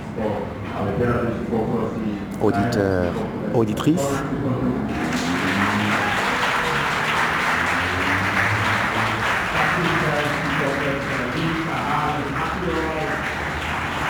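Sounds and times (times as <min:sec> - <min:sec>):
speech: 0:00.2 - 0:04.6
audience applause: 0:04.9 - 0:14.0.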